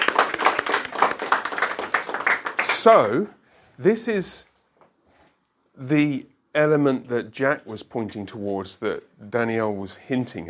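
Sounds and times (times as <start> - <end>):
audience applause for a speaker: 0.0 - 3.3
speech: 2.8 - 4.5, 5.8 - 10.4.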